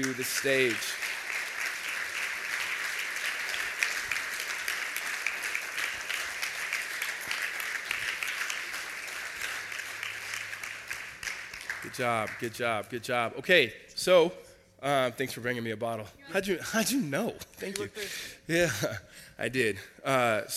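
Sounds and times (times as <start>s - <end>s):
speech: 0.0s - 1.1s, 11.9s - 20.5s
crowd applauding: 0.0s - 12.8s.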